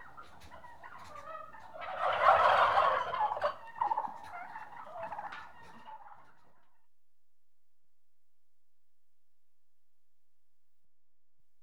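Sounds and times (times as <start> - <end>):
turkeys gobbling: 0.0 - 6.6.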